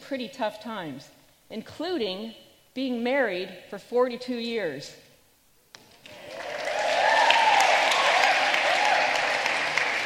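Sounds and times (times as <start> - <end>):
speech: 0.1 - 5.0
audience applause: 6.0 - 10.0.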